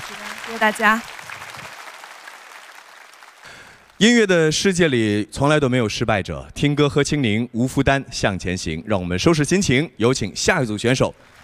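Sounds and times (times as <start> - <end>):
audience applause for a singing contestant: 0.0 - 4.1, 11.1 - 11.4
speech: 0.1 - 1.1, 4.0 - 11.4.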